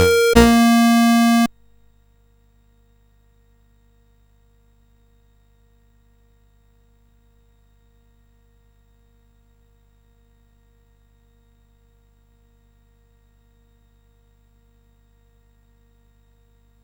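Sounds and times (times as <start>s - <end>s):
fireworks celebration chiptune music on CSG8580R5 chip: 0.0s - 1.5s.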